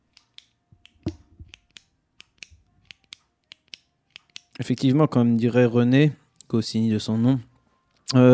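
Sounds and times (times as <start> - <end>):
pen clicking or tapping: 0.1 - 5.5
speech: 4.6 - 7.5, 8.1 - 8.3.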